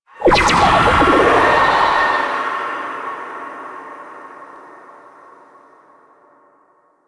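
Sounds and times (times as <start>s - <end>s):
rift walk ability sound effect: 0.2s - 2.3s.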